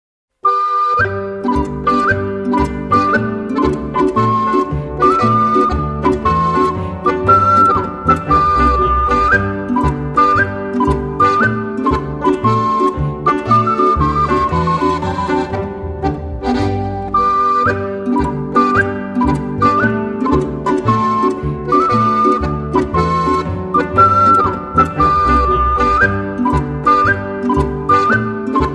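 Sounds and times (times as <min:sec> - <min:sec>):
ocarina playing a Boarischer folk dance: 0:00.4 - 0:28.7.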